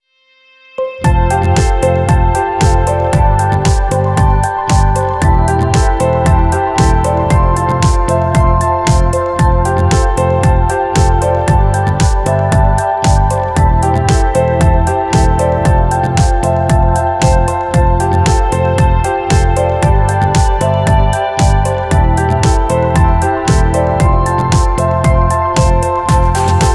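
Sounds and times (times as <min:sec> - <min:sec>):
instrumental music: 0:00.7 - 0:26.7.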